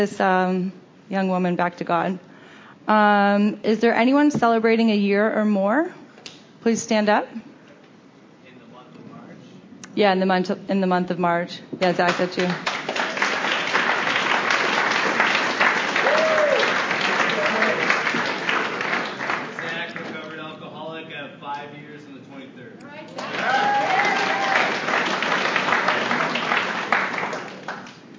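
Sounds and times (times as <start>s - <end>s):
speech: 0.0s - 6.0s, 6.6s - 7.5s, 10.0s - 12.8s
audience applause: 12.1s - 20.4s, 23.2s - 28.1s.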